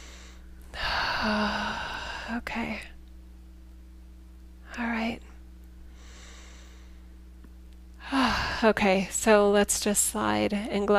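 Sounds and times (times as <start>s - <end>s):
deep breath drawn in during a guided breathing session: 0.0s - 2.4s, 5.9s - 7.1s
speech: 1.2s - 1.7s, 2.3s - 3.0s, 4.8s - 5.3s, 8.6s - 10.9s.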